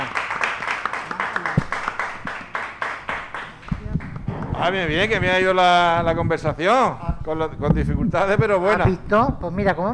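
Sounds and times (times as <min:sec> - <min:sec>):
audience applause: 0:00.0 - 0:04.6
speech: 0:04.6 - 0:09.9.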